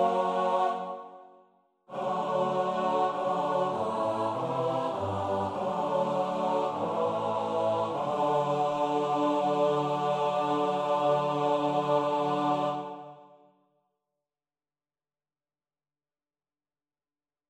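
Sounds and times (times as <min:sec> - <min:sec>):
soprano alto tenor bass choir: 0:00.0 - 0:13.4.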